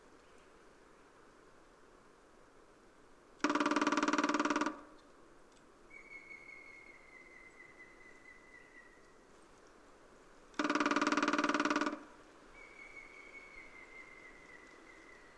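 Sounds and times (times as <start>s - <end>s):
grey-headed woodpecker drumming: 3.4s - 5.1s, 10.6s - 12.8s.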